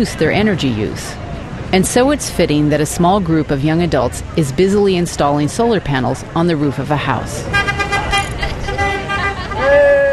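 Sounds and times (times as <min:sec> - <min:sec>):
speech: 0:00.0 - 0:07.7
road noise and vehicles driving by: 0:00.0 - 0:10.1
car horns honking from passing traffic on a hot sunny day in California: 0:07.4 - 0:10.1.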